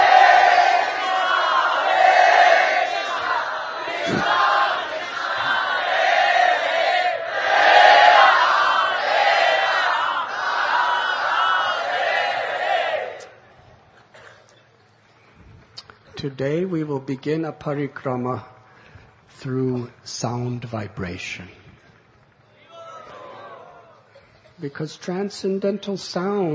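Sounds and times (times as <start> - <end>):
crowd loudly chanting a devotional chant in Vrindavan: 0.0 - 13.4
speech: 16.3 - 18.5, 19.4 - 21.6, 24.6 - 26.5.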